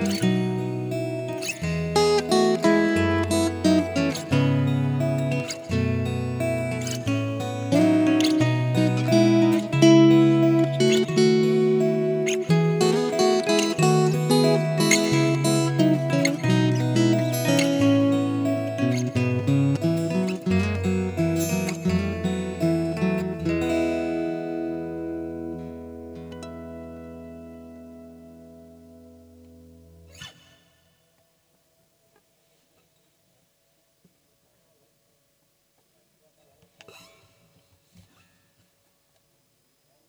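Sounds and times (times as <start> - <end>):
guitar piece: 0.0 - 30.8.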